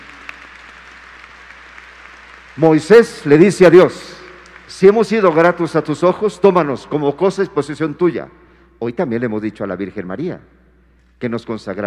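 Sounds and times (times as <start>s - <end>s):
applause: 0.0s - 6.0s
speech: 2.6s - 4.2s, 4.8s - 10.6s, 11.2s - 11.8s.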